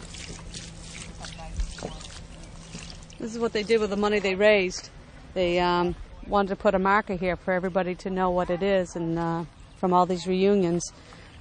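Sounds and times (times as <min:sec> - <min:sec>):
water poured from a container onto newly planted flowers at a granite monument: 0:00.0 - 0:04.3
speech: 0:03.2 - 0:11.2.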